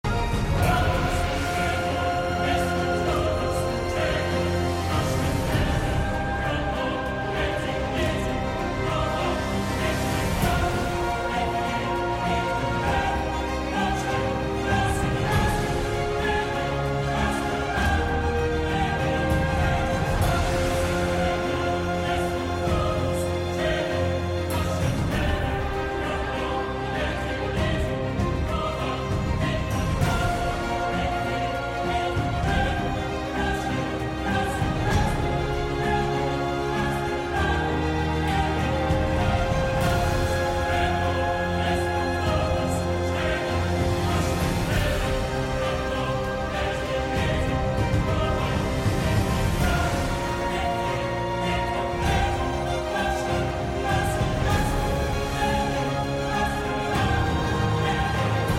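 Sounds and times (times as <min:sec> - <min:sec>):
cinematic orchestra: 0:00.0 - 0:58.5
epic drums: 0:00.0 - 0:58.5.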